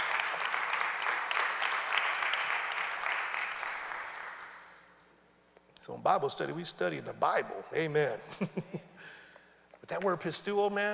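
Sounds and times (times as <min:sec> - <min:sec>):
audience hand clapping: 0:00.0 - 0:04.9
speech: 0:05.9 - 0:09.2, 0:09.9 - 0:10.9.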